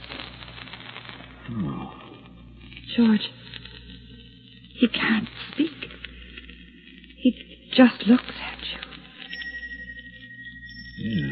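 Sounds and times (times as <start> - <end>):
speech: 1.5 - 2.0, 3.0 - 3.4, 4.8 - 5.8, 7.2 - 8.4
small bell ringing on bed springs: 9.3 - 11.3.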